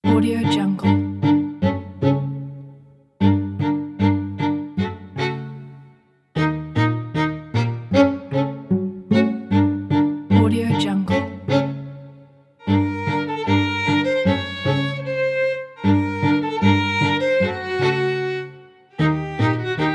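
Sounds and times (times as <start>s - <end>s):
comedic quartet music: 0.0s - 19.9s.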